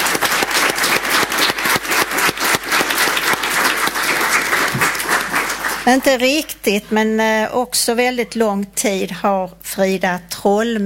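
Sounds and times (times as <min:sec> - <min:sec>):
audience applause: 0:00.0 - 0:06.1
speech: 0:05.8 - 0:10.8.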